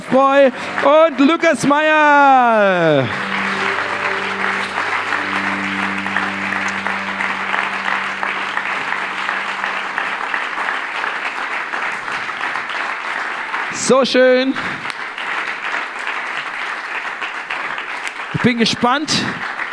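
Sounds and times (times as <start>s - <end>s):
low sustained tones: 0.0s - 12.6s
standing ovation applause at an ICF Salzburg event: 0.0s - 19.7s
speech: 0.1s - 3.3s, 13.9s - 14.8s, 18.4s - 19.5s.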